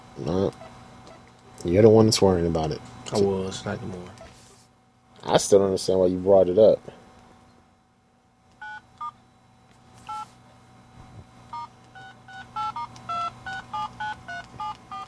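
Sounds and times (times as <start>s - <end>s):
speech: 0.2s - 0.7s, 1.6s - 4.2s, 5.2s - 7.0s
phone keypad beeps as keys are pressed: 8.6s - 9.2s, 10.1s - 10.3s, 11.5s - 15.0s.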